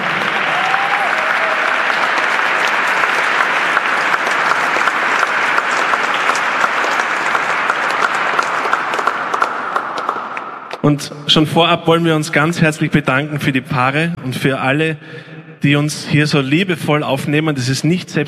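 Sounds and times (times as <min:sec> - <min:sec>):
audience applause: 0:00.0 - 0:10.8
speech: 0:10.9 - 0:18.2.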